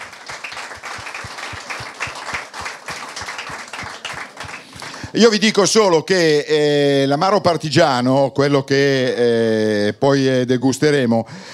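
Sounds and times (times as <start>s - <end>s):
audience applause: 0.0s - 5.8s
speech: 5.1s - 11.5s.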